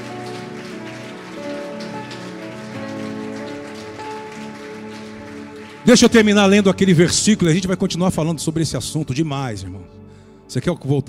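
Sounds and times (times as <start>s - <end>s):
crowd clapping loudly: 0.0s - 8.0s
speech: 5.8s - 11.0s.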